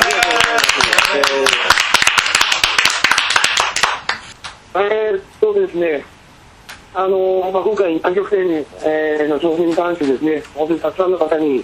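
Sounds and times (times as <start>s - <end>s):
applause, clapping hands: 0.0s - 4.6s
speech: 4.8s - 6.2s, 6.9s - 11.6s.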